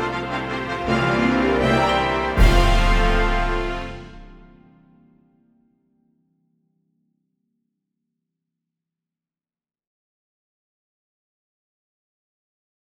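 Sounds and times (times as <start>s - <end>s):
horns playing in fifths: 0.0s - 4.6s.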